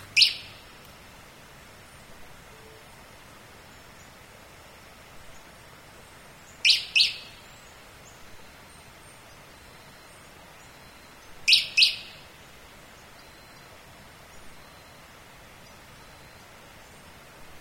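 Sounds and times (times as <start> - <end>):
bird high chirps: 0.2 - 0.7, 6.6 - 7.5, 10.7 - 12.2.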